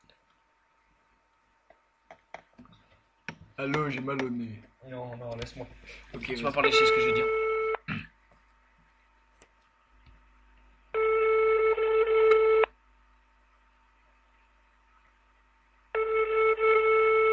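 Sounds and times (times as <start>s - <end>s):
speech: 3.6s - 7.4s
telephone ringback tone over the line: 11.0s - 12.7s, 16.0s - 17.3s.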